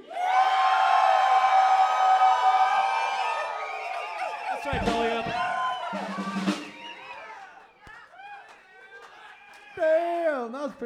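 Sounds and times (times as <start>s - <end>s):
crowd yelling: 0.0s - 10.2s.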